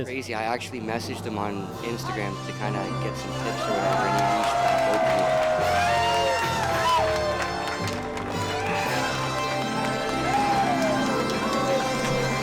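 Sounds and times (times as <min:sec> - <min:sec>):
speech: 0:00.0 - 0:05.9
crowd cheering at a competition: 0:03.3 - 0:12.4.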